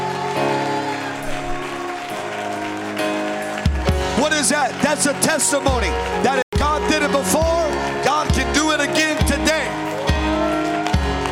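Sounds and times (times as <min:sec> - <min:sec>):
audience lifting voices: 0:00.0 - 0:06.2
audience clapping hands: 0:00.0 - 0:11.3
speech: 0:04.2 - 0:06.4.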